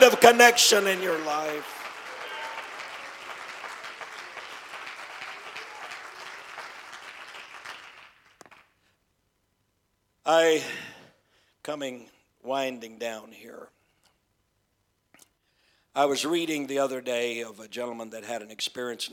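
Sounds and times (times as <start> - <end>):
speech: 0.0 - 1.8, 10.3 - 10.9, 11.6 - 13.8, 16.0 - 19.1
audience clapping hands: 0.0 - 8.8.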